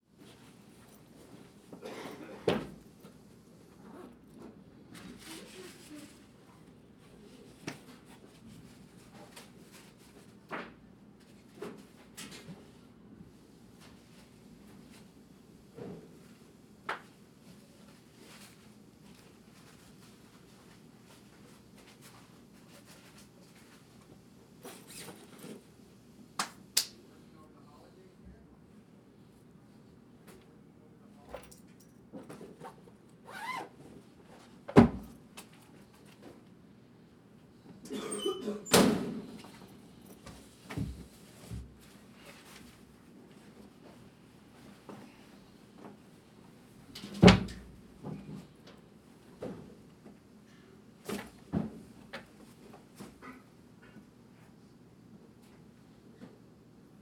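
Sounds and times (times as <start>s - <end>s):
locker room ambience: 0.0s - 57.0s.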